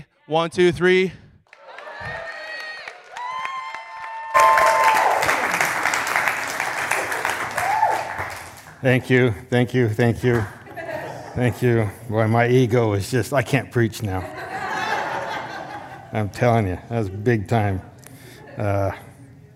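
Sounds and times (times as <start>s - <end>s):
speech: 0.3s - 1.2s, 8.8s - 10.6s, 11.4s - 14.4s, 16.1s - 17.9s, 18.6s - 19.1s
crowd applauding with cheers and whoops: 1.5s - 8.8s
laughter: 10.4s - 12.4s, 14.0s - 19.1s.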